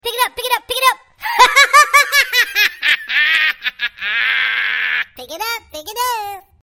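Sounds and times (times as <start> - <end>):
person laughing crazily: 1.2 - 5.2.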